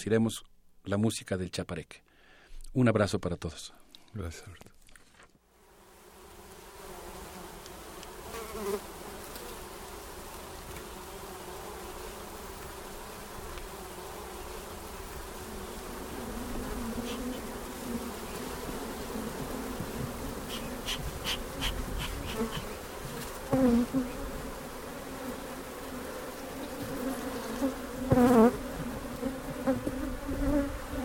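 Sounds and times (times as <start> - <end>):
speech: 0.0 - 2.1, 2.8 - 4.7, 8.6 - 8.9
swarm of bees buzzing at an apiary: 5.6 - 31.0.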